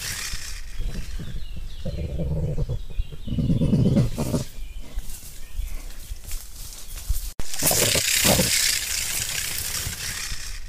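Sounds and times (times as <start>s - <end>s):
crested porcupine grunting: 0.8s - 5.1s, 7.6s - 9.8s.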